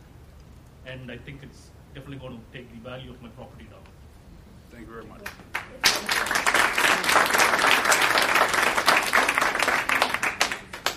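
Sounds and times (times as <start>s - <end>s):
speech: 0.9s - 4.0s, 4.7s - 8.0s
audience clapping: 5.2s - 10.9s.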